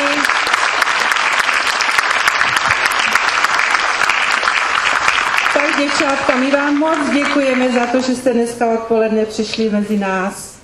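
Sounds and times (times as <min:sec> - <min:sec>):
audience applause: 0:00.0 - 0:08.0
speech: 0:05.9 - 0:10.6.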